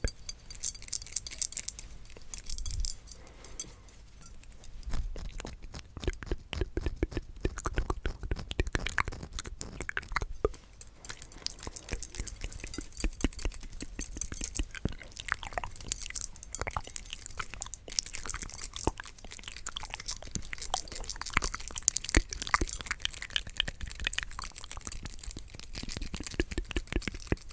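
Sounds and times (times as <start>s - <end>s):
mouth clicks and wet smacks: 4.8s - 10.6s, 11.4s - 27.5s
crunchy chewing-like bites: 4.9s - 10.6s, 11.3s - 27.5s.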